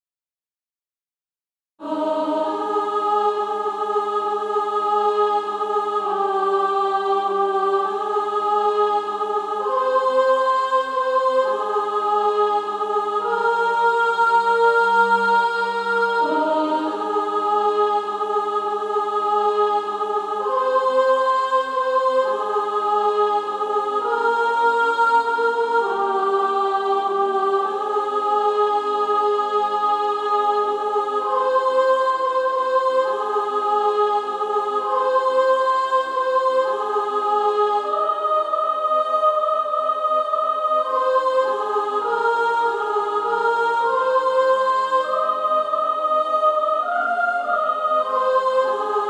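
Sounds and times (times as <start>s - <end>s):
female choir soprano section singing: 1.8s - 49.0s.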